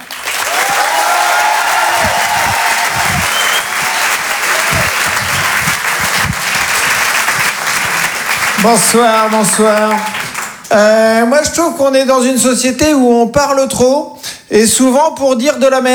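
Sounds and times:
French comedy club audience clapping: 0:00.0 - 0:10.8
audience whoops and shouts: 0:00.4 - 0:05.8
speech: 0:08.6 - 0:15.9.

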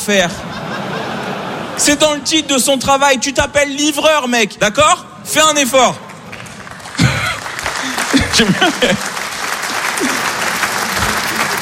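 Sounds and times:
speech: 0:00.0 - 0:00.6, 0:01.8 - 0:06.0, 0:08.4 - 0:09.1
laughter: 0:00.2 - 0:02.8, 0:06.7 - 0:11.5
audience applause: 0:06.1 - 0:11.5.

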